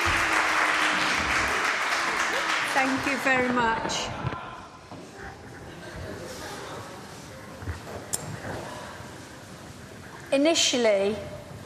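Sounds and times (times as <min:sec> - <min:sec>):
round of applause: 0:00.0 - 0:04.0
speech: 0:02.8 - 0:04.3, 0:10.4 - 0:11.3.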